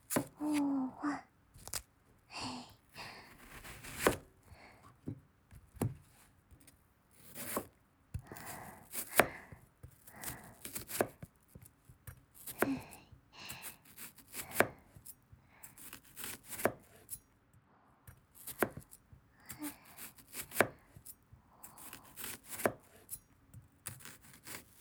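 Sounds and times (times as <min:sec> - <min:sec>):
knife chopping onions: 0:00.0 - 0:00.7, 0:03.3 - 0:04.3, 0:07.2 - 0:15.1, 0:15.7 - 0:17.2, 0:18.1 - 0:24.7.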